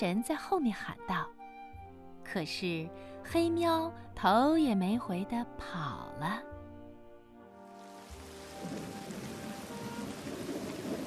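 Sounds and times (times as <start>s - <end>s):
speech: 0.0s - 1.4s, 2.3s - 6.5s, 8.6s - 9.2s
heavy rain pouring: 7.7s - 11.0s
wind whooshing: 8.3s - 11.0s
rumbling thunder: 8.4s - 11.0s.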